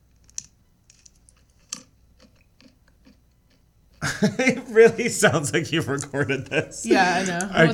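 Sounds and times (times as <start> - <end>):
chewing crunchy pretzels: 0.2 - 4.0
laughter: 4.0 - 7.7
speech: 4.2 - 7.7.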